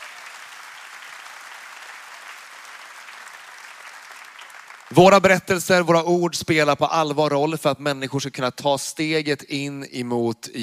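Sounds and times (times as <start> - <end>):
audience applause: 0.0 - 5.5
speech: 4.9 - 10.6.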